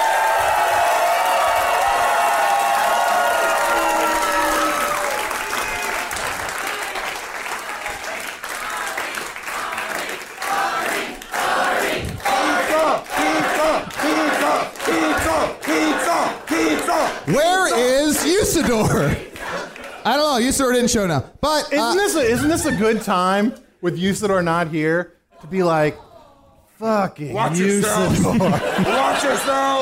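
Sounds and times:
audience applause and cheering: 0:00.0 - 0:20.8
laughter: 0:14.9 - 0:20.0, 0:27.5 - 0:29.7
speech: 0:20.6 - 0:26.0, 0:26.8 - 0:29.7.

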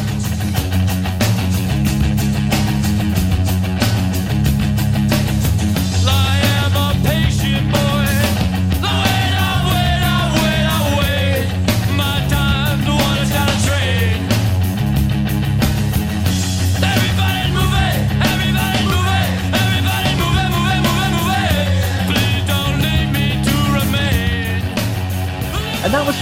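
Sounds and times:
dense guitars: 0:00.0 - 0:26.2
repeating bass riff: 0:00.0 - 0:26.2
rock band playing: 0:00.0 - 0:26.2
pounding drums: 0:00.7 - 0:26.2
raw vocal line: 0:05.8 - 0:14.7, 0:16.2 - 0:26.2.

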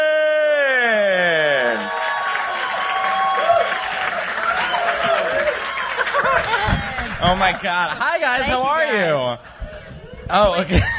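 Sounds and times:
audience whooping at a live show: 0:00.0 - 0:07.6
audience applause welcoming hosts on stage at a live show: 0:01.2 - 0:10.8
laughter: 0:05.8 - 0:08.8, 0:10.4 - 0:10.9
speech: 0:07.3 - 0:09.5, 0:10.3 - 0:10.9.

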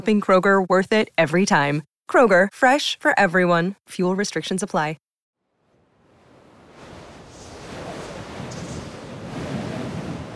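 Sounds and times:
speech: 0:00.0 - 0:05.0
biting wind whistling across open ground: 0:05.6 - 0:10.3.

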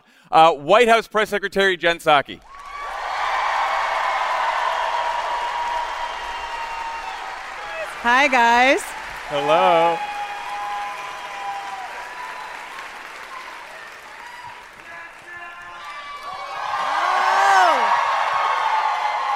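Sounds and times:
speech: 0:00.3 - 0:02.6, 0:08.0 - 0:10.1
crowd clapping: 0:02.4 - 0:19.3
whoops and high cheering voices: 0:02.5 - 0:08.0, 0:09.4 - 0:19.3.

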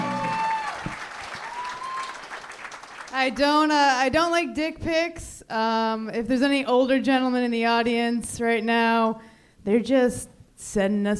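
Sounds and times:
audience applause at a live comedy show: 0:00.0 - 0:03.2
speech: 0:03.2 - 0:11.1.

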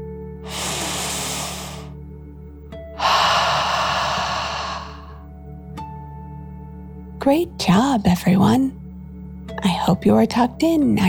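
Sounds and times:
deep breath in and out during a guided calming exercise: 0:00.4 - 0:02.0, 0:03.0 - 0:05.2
speech: 0:07.2 - 0:08.8, 0:09.9 - 0:11.0.

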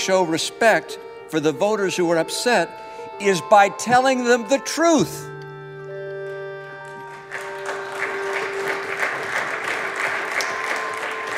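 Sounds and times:
speech: 0:00.0 - 0:05.3
bipartisan applause on the Senate floor: 0:06.8 - 0:11.3.

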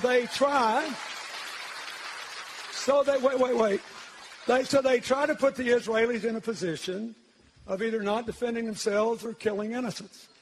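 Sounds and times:
speech: 0:00.0 - 0:01.2, 0:02.8 - 0:10.3
audience applause: 0:00.0 - 0:05.0.

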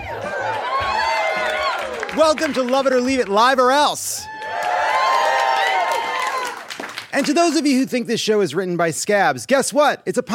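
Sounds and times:
sold-out live crowd cheering: 0:00.0 - 0:07.6
speech: 0:02.2 - 0:04.3, 0:07.1 - 0:10.3.

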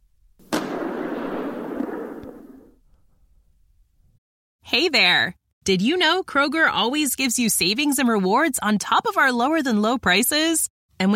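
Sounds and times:
rifle shot: 0:00.4 - 0:02.8
speech: 0:04.7 - 0:11.1.

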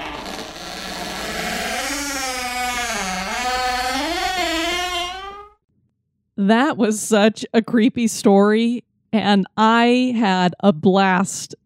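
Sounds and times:
attic door creaking open: 0:00.0 - 0:05.6
speech: 0:06.4 - 0:11.6.

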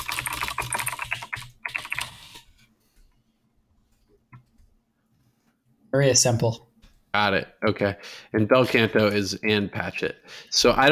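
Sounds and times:
rapid typing of a web search on a computer keyboard: 0:00.0 - 0:02.4
speech: 0:06.0 - 0:10.9.

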